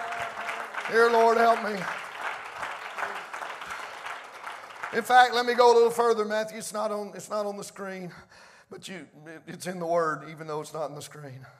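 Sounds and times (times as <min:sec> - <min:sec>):
congregation clapping hands in church during worship: 0:00.0 - 0:06.3
speech: 0:00.9 - 0:02.0, 0:04.9 - 0:11.5.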